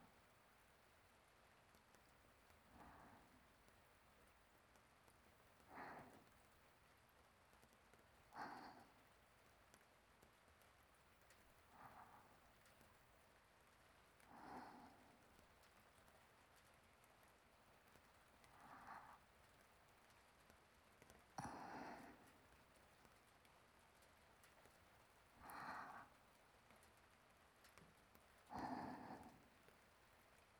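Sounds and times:
sleeping breathing: 2.7 - 3.6, 5.6 - 6.4, 8.3 - 9.1, 11.7 - 12.8, 14.2 - 15.4, 18.4 - 19.6, 21.4 - 22.6, 25.4 - 26.2, 28.4 - 29.8.

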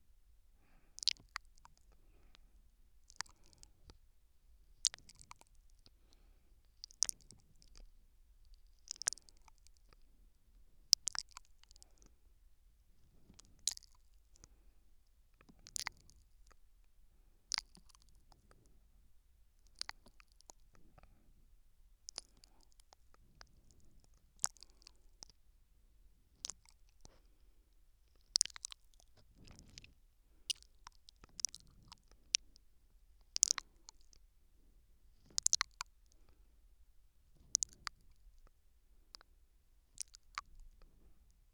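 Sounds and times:
soft nibbling on the left ear: 0.7 - 4.0, 4.8 - 7.9, 8.5 - 10.0, 13.1 - 14.6, 15.4 - 16.6, 17.5 - 18.7, 19.6 - 21.2, 22.0 - 25.4, 26.3 - 27.4, 28.1 - 34.3, 35.2 - 36.4, 37.3 - 39.3, 39.9 - 41.0.

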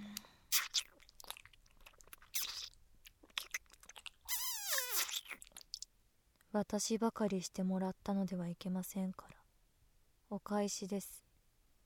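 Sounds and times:
person chewing food: 0.1 - 4.3, 5.0 - 5.9
wet mouth clicks: 0.1 - 5.9
speech: 6.5 - 9.3, 10.3 - 11.2.

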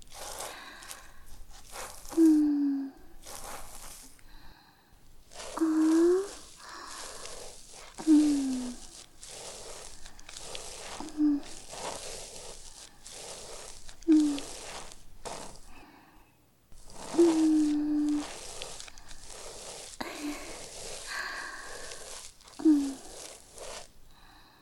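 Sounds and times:
ear cleaning: 0.0 - 15.8, 16.7 - 24.4
looped breathing: 0.3 - 2.2, 3.7 - 5.1, 6.2 - 8.0, 15.6 - 16.4, 19.8 - 22.3, 22.9 - 24.6.

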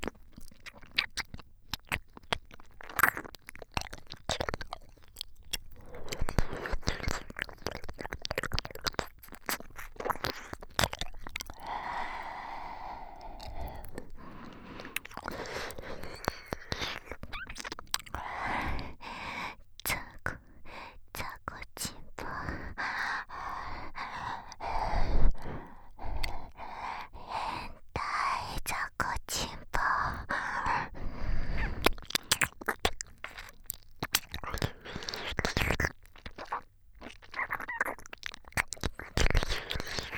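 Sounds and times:
close ear licking ASMR: 0.0 - 40.1.

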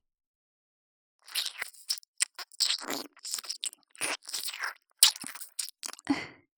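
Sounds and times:
ear licking in right channel: 1.2 - 6.1.

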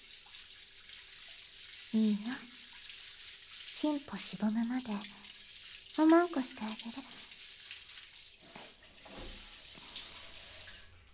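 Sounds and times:
speech: 1.9 - 2.6, 3.8 - 5.2, 6.0 - 7.3
rain falling outside: 1.9 - 2.9, 3.6 - 11.1.

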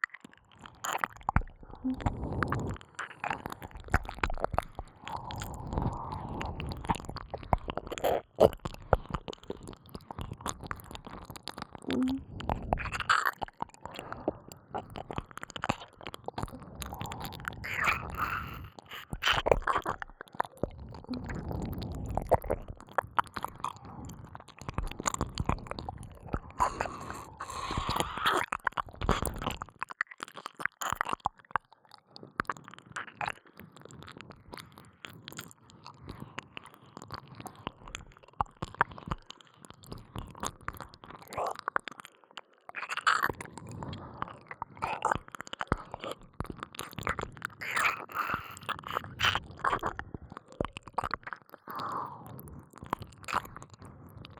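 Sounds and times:
sticky wet double ear licking sounds: 0.2 - 54.3.

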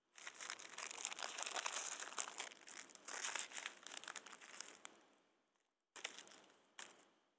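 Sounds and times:
handheld fireworks picked up in their packaging: 0.2 - 4.9.

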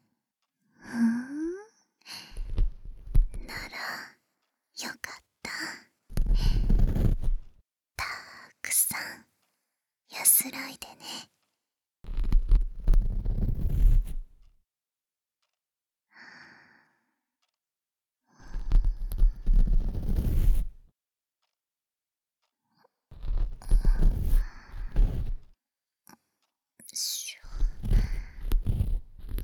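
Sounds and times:
ear cleaning with an ear pick and bonten: 6.2 - 7.5, 12.1 - 14.4, 18.5 - 20.8, 23.1 - 25.5, 27.3 - 29.4.

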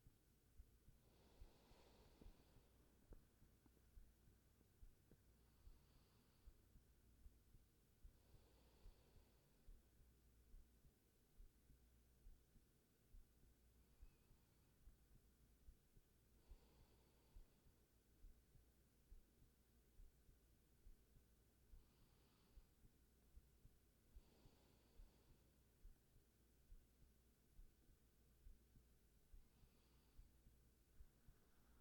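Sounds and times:
heartbeat: 0.0 - 1.1, 2.2 - 5.8, 6.4 - 8.3, 9.1 - 16.4, 17.4 - 21.9, 22.6 - 24.2, 25.7 - 29.6, 30.2 - 31.7
sleeping breathing: 1.0 - 3.8, 5.4 - 6.8, 8.1 - 9.7, 16.4 - 17.7, 24.2 - 25.5.

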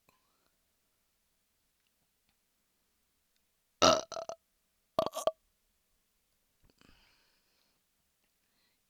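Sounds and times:
burping: 3.8 - 4.4, 5.0 - 5.3
person drinking semen from a mug: 3.8 - 4.4, 5.0 - 5.3.

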